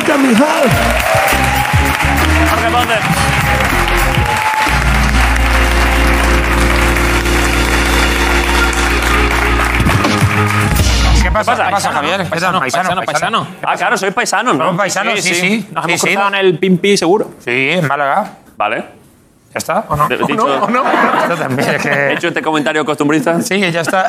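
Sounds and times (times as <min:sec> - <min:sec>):
audience applause: 0:00.0 - 0:11.4
speech: 0:00.1 - 0:01.2, 0:02.8 - 0:03.8, 0:11.4 - 0:24.0
laughter: 0:19.9 - 0:24.0.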